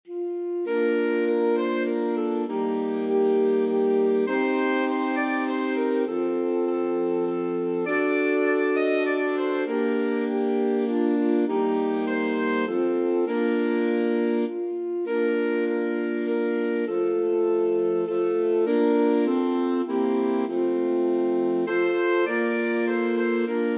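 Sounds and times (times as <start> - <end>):
alto saxophone quartet: 0.1 - 23.7.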